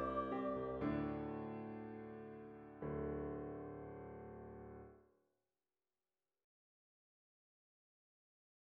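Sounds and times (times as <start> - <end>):
solo piano: 0.0 - 5.0.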